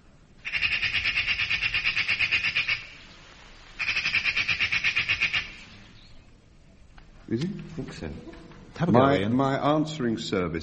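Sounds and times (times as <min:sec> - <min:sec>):
magpie call: 0:00.4 - 0:03.0, 0:03.8 - 0:06.2
speech: 0:07.3 - 0:10.6.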